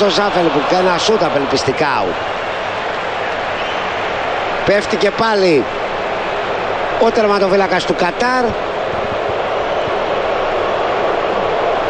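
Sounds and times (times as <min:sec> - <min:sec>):
speech: 0:00.0 - 0:02.4, 0:04.7 - 0:05.8, 0:07.0 - 0:08.7
stadium crowd booing: 0:00.0 - 0:11.8.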